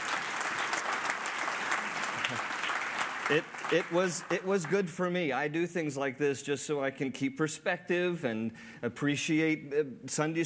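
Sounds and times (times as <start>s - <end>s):
audience applause for Sunday school teachers: 0.0s - 4.9s
speech: 2.3s - 2.6s, 3.3s - 10.4s.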